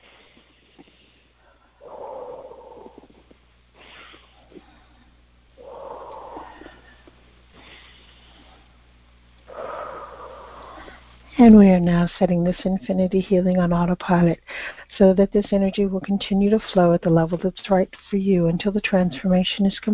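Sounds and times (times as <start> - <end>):
slow deep sniffing breaths during a guided healing meditation: 0.0 - 11.3, 14.4 - 14.9
speech: 11.4 - 19.9.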